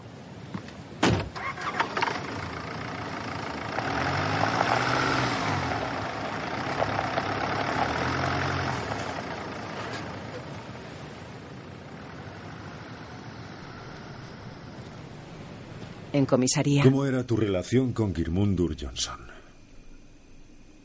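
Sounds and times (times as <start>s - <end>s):
car engine rumbling: 0.0s - 20.8s
car door shutting: 0.5s - 2.0s
speech: 16.2s - 19.4s.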